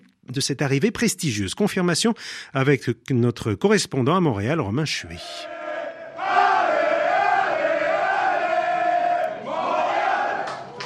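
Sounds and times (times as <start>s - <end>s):
speech: 0.3s - 5.6s
Montreal Impact ultras chanting and cheering at Pierre-Elliott Trudeau airport: 5.4s - 10.8s.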